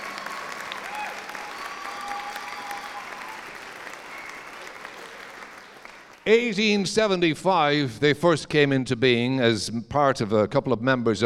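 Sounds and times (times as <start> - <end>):
audience applause welcoming a brass band's musical director: 0.0 - 6.6
speech: 6.3 - 11.2.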